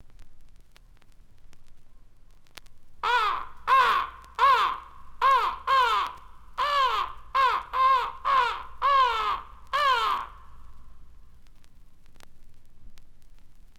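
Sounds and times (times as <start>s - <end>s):
faint low hum: 0.0s - 13.7s
crow cawing: 3.0s - 10.7s.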